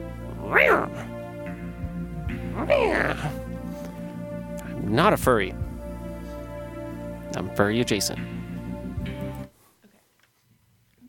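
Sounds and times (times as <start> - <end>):
quiet steady tonal background: 0.0 - 9.9
person imitating a cat meow: 0.4 - 1.1, 2.5 - 3.4
speech: 2.6 - 3.4, 4.9 - 5.6, 7.3 - 8.4.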